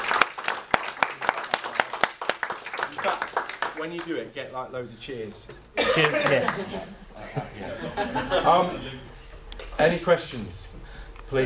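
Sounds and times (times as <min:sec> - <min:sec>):
scattered audience clapping after a talk about running a school: 0:00.0 - 0:04.2
speech: 0:03.8 - 0:09.1, 0:09.8 - 0:11.4
laughter: 0:05.8 - 0:09.3.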